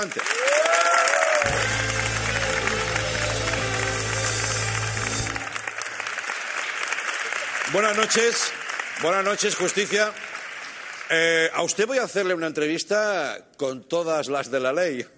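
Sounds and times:
speech: 0:00.0 - 0:00.7, 0:07.7 - 0:10.3, 0:11.1 - 0:15.1
studio audience applause: 0:00.0 - 0:11.8.

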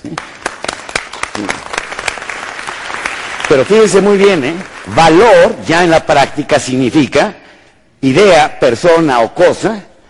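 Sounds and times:
audience applause: 0:00.0 - 0:05.1
speech: 0:03.5 - 0:07.4, 0:08.0 - 0:09.9.

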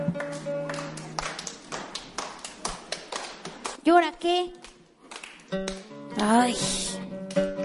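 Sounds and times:
audience clapping along: 0:00.0 - 0:03.8, 0:04.6 - 0:06.4
speech: 0:03.9 - 0:04.6, 0:05.5 - 0:07.5.

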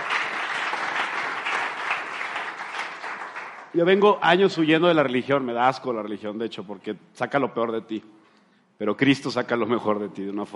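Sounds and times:
applause: 0:00.0 - 0:04.2
speech: 0:03.8 - 0:08.2, 0:08.8 - 0:10.5.

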